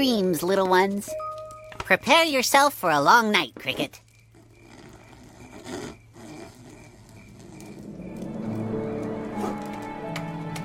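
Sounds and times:
speech: 0.0 - 1.3, 1.9 - 4.0
wood carving: 3.7 - 9.9.

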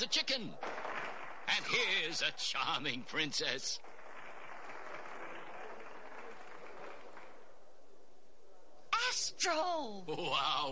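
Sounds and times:
speech: 0.0 - 0.7, 1.5 - 3.9, 9.4 - 10.7
audience applause: 0.6 - 1.5, 3.8 - 7.5.

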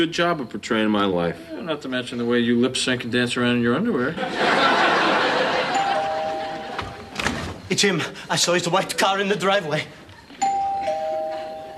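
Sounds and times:
speech: 0.0 - 5.4, 7.7 - 10.0
laughter: 4.1 - 7.2
doorbell ringing: 5.6 - 7.2, 10.4 - 11.7.

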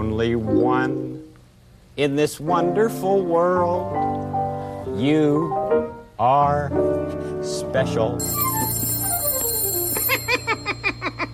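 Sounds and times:
speech: 0.2 - 1.3, 2.0 - 4.3, 5.0 - 8.6
telephone ringing: 8.2 - 11.3.

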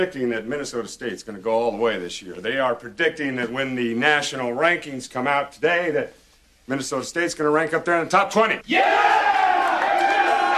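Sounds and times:
speech: 0.0 - 9.2
crowd roaring and cheering: 8.7 - 10.5
whoops and shouts: 8.7 - 10.5.

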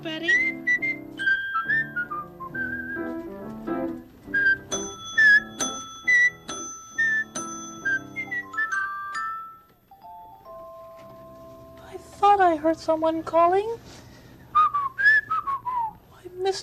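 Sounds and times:
speech: 0.0 - 0.6, 12.5 - 14.0
person whistling a tune: 0.2 - 3.3, 4.3 - 8.9, 14.5 - 16.0.

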